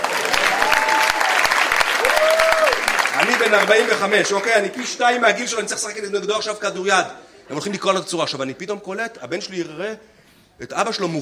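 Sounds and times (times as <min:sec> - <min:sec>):
audience applause: 0:00.0 - 0:05.3
speech: 0:03.4 - 0:11.2.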